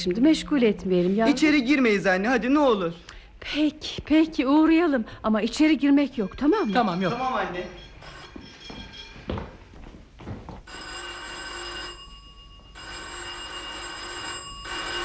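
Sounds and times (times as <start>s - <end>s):
speech: 0.0s - 7.9s
doorbell ringing: 6.2s - 9.4s, 10.7s - 15.0s.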